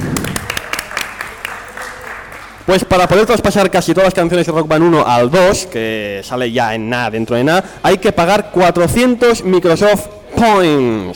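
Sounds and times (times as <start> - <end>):
scattered audience applause at a video game event: 0.0 - 2.9
speech: 2.7 - 11.1.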